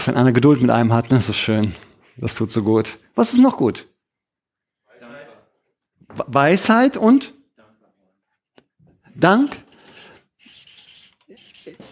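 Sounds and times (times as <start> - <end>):
speech: 0.0 - 3.9, 6.1 - 7.4, 9.2 - 9.6
scratchy writing strokes: 9.3 - 11.8.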